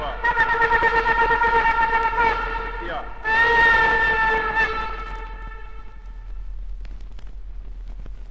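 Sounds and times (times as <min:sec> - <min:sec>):
shofar blowing: 0:00.0 - 0:06.6.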